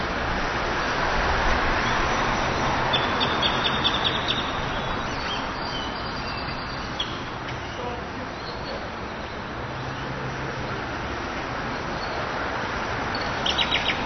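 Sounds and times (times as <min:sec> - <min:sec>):
traffic roar: 0:00.0 - 0:14.0
bird chirps: 0:02.9 - 0:07.8, 0:13.1 - 0:14.0.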